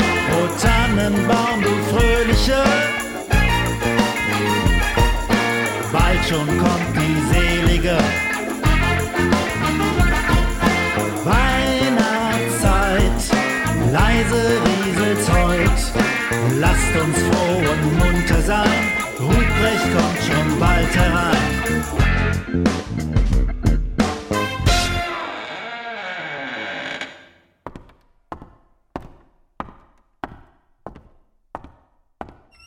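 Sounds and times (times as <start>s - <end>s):
Christmas hip hop music: 0.0s - 25.1s.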